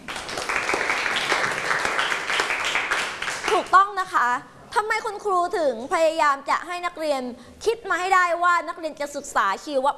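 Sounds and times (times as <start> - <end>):
classroom applause: 0.0 - 3.7
speech: 3.7 - 9.9.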